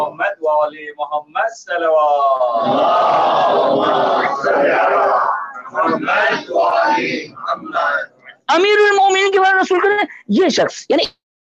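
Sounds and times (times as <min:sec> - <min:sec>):
speech: 0:00.0 - 0:11.2
crowd at a religious gathering shouting in unison: 0:02.5 - 0:08.0.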